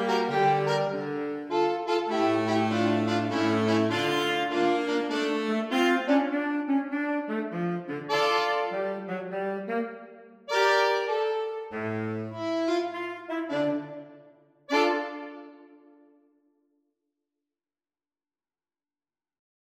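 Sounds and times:
minimal jazz music: 0:00.0 - 0:14.1, 0:14.7 - 0:15.8.

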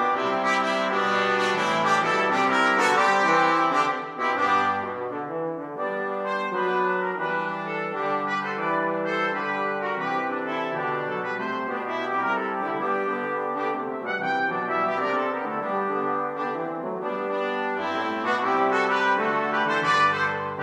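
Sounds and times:
brass quartet playing a jazz carol: 0:00.0 - 0:20.6.

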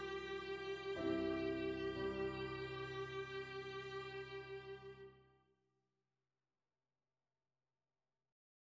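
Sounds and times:
violin melody: 0:00.0 - 0:05.2.

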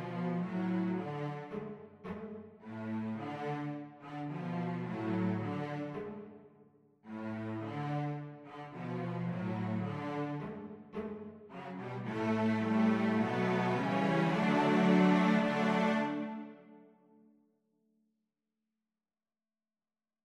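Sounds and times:
cello quartet: 0:00.0 - 0:06.4, 0:07.1 - 0:16.8.

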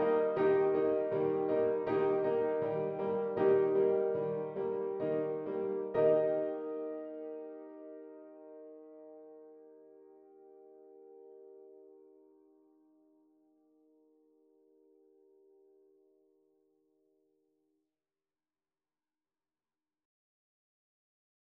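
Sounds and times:
piano: 0:00.0 - 0:16.7.

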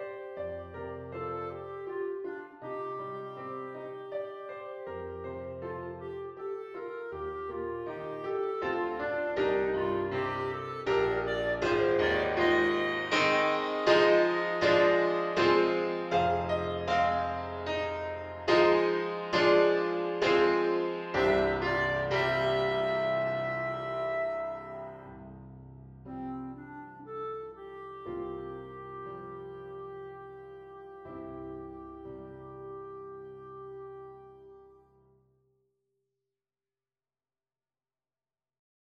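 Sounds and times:
bass clarinet playing: 0:00.0 - 0:25.3, 0:26.0 - 0:35.0.

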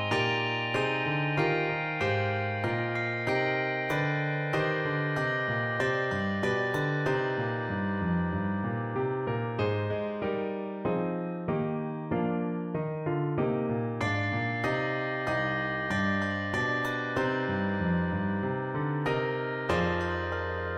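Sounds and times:
two-octave handbells: 0:00.0 - 0:09.0, 0:14.0 - 0:20.7
piano accompaniment: 0:00.0 - 0:20.7.

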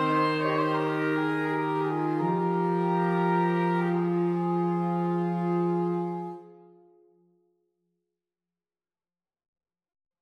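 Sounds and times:
saxophone trio playing: 0:00.0 - 0:06.9.

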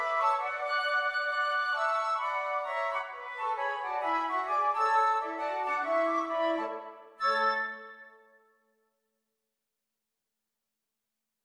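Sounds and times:
jazz flute quartet playing swing: 0:00.0 - 0:07.7.

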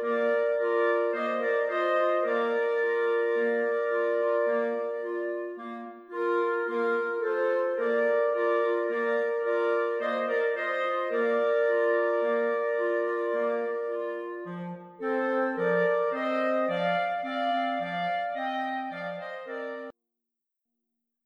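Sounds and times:
clarinet trio playing: 0:00.0 - 0:19.9.

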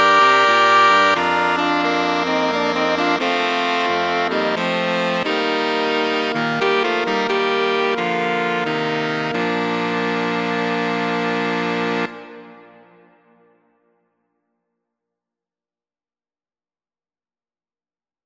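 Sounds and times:
jazz saxophone quartet: 0:00.0 - 0:12.6.

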